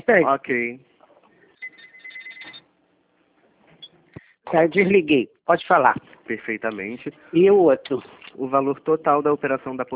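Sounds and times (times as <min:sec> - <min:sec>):
speech: 0:00.1 - 0:00.9, 0:04.5 - 0:09.9
another telephone ringing: 0:01.6 - 0:02.7.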